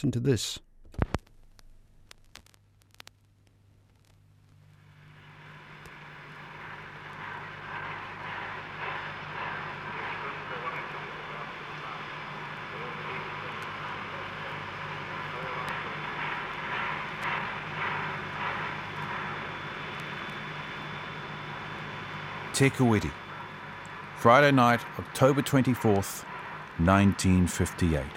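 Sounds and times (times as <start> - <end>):
speech: 0.0 - 1.1, 22.6 - 23.2, 24.2 - 28.1
New Zealand Railways KA steam locomotive departing with passenger train: 6.0 - 20.2, 22.2 - 28.1.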